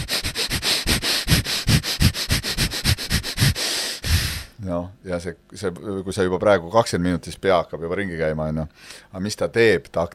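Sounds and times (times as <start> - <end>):
intense rhythmic breathing through the nose: 0.0 - 4.6
speech: 4.8 - 10.1.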